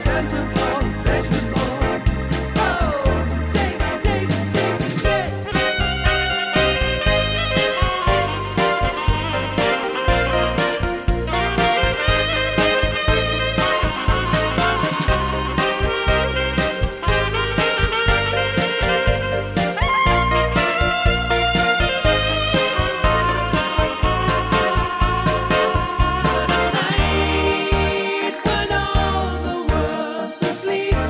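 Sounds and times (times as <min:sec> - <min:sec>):
saxophone: 0:00.0 - 0:31.0.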